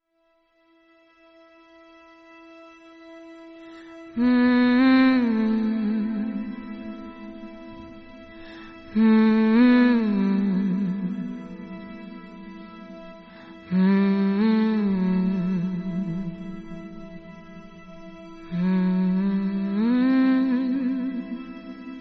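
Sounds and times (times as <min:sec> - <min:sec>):
lullaby music: 0:03.2 - 0:21.9.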